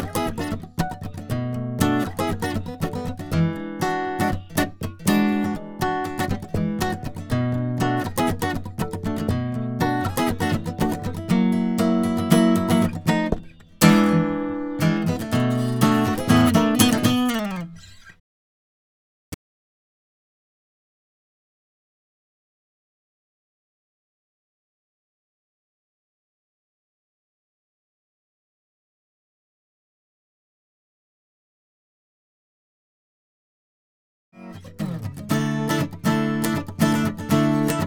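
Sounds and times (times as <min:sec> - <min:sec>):
guitar: 0:00.0 - 0:18.2, 0:34.4 - 0:37.8.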